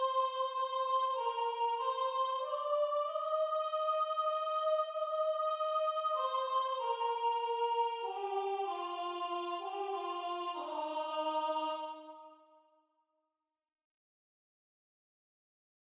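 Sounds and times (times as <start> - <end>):
soprano singing: 0.0 - 12.3.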